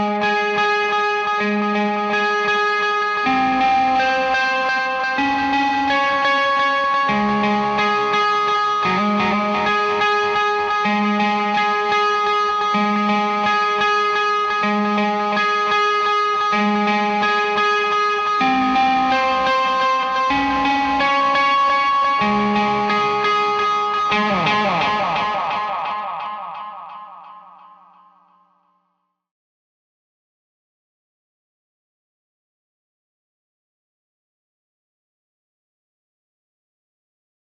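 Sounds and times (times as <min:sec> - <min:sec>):
guitar in C: 0:00.0 - 0:28.8.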